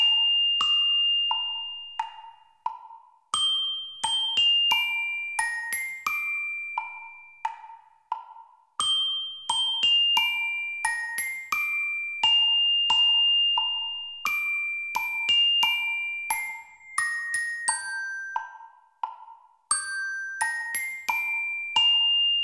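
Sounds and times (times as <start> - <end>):
mallet percussion practice track: 0.0 - 22.4.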